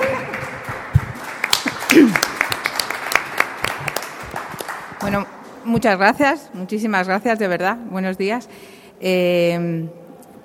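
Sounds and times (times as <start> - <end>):
audience applause: 0.0 - 5.1
speech: 2.0 - 2.3, 5.0 - 10.0.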